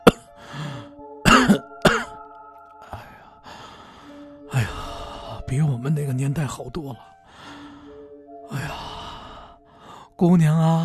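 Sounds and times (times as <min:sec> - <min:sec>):
old woman coughing: 0:00.0 - 0:00.3, 0:01.2 - 0:02.2
speech: 0:05.5 - 0:07.2, 0:10.2 - 0:10.8.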